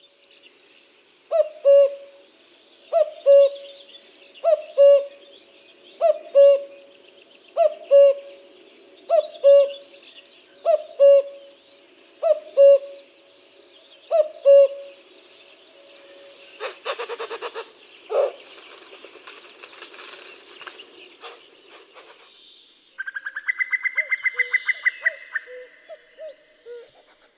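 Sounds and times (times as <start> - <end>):
common cuckoo calling: 1.3 - 2.2, 2.9 - 13.2, 13.8 - 18.5, 23.0 - 27.3.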